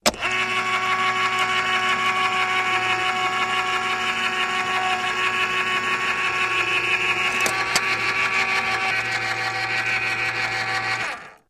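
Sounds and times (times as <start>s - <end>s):
electric can opener: 0.0s - 11.4s.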